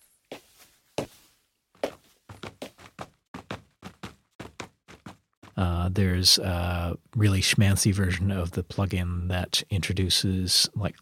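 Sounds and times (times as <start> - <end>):
sampled footsteps of shoes on a hard surface: 0.0 - 5.6
speech: 5.6 - 10.9.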